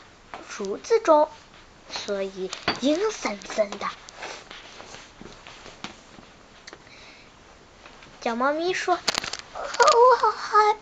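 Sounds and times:
speech: 0.6s - 4.0s, 8.2s - 9.2s, 9.8s - 10.7s
footsteps of a swaggering tiger: 1.4s - 6.8s.

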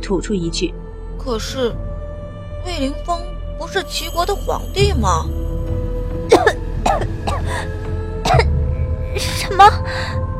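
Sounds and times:
speech: 0.0s - 1.9s, 2.6s - 5.4s, 9.2s - 10.2s
person choking on food stuck in the throat and coughing: 6.3s - 8.6s.

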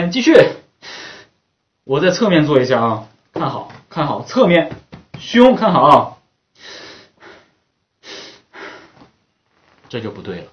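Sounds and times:
speech: 0.1s - 0.6s, 1.9s - 6.8s, 9.9s - 10.5s
heavy inhaled breaths drawn faultily during a singing lesson: 6.6s - 9.1s.

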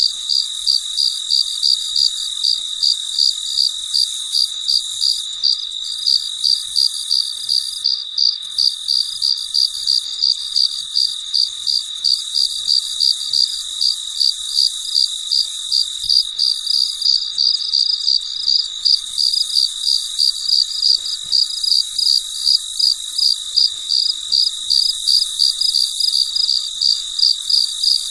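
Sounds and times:
cricket chirping: 0.0s - 28.0s
steady whining insect chorus: 0.0s - 28.0s.

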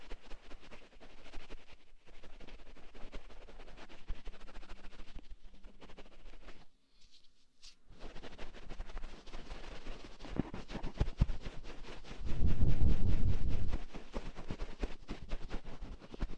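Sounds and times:
cotton swab cleaning an ear: 3.3s - 16.3s.

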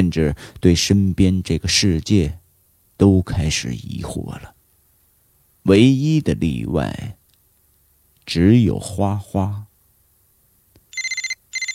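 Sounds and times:
speech: 0.0s - 2.4s, 3.0s - 4.6s, 5.6s - 7.2s, 8.3s - 9.7s
mobile phone ringing with electronic warble: 10.9s - 11.7s.

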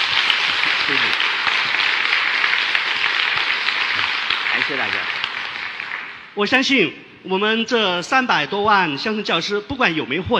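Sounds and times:
warm applause from audience: 0.0s - 6.4s
speech: 4.7s - 5.2s, 6.4s - 10.3s.

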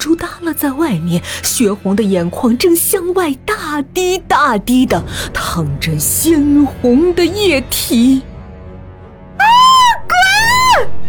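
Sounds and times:
speech: 0.6s - 8.3s
person screaming in terror: 9.4s - 11.0s.

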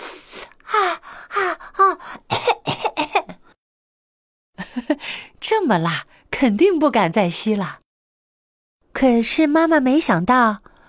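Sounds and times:
voice imitating a fire-breathing dragon coughing: 2.3s - 3.4s
speech: 5.7s - 7.8s, 9.0s - 10.6s.

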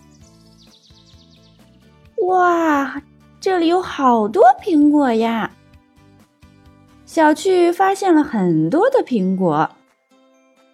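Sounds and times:
birds chirping happily in a forest: 0.0s - 5.5s
speech: 2.2s - 5.6s, 7.1s - 9.8s.

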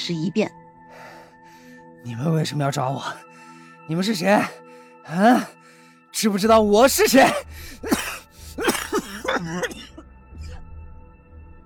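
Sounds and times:
speech: 0.0s - 0.6s, 2.0s - 3.3s, 3.9s - 8.0s, 9.3s - 9.9s
violent coughing: 7.0s - 10.6s.

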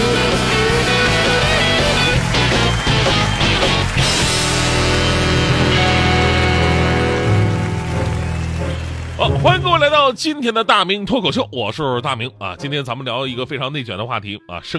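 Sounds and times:
applause: 0.2s - 10.2s
speech: 10.1s - 14.7s.

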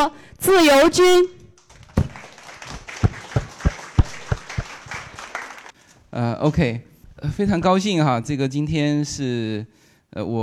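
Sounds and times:
speech: 0.0s - 1.4s, 6.2s - 10.4s
audience applause: 1.6s - 5.8s.

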